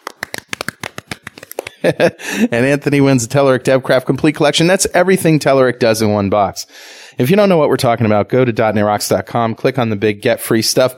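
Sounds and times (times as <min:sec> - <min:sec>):
golf clap: 0:00.0 - 0:01.9
speech: 0:01.8 - 0:10.9.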